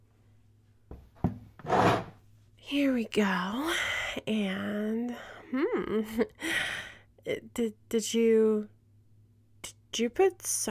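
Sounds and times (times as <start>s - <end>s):
wooden chair being moved across floor: 0.9s - 2.2s
speech: 2.7s - 8.8s, 9.6s - 10.6s.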